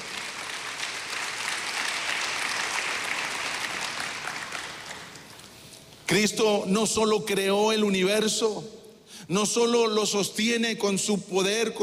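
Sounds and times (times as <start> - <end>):
audience applause: 0.0 - 5.4
speech: 6.1 - 11.8.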